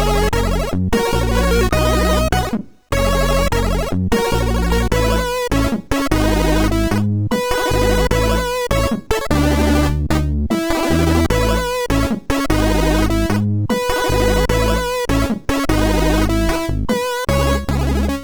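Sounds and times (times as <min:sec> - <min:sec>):
chiptune music on a MOS6581R4 SID chip: 0:00.0 - 0:18.2.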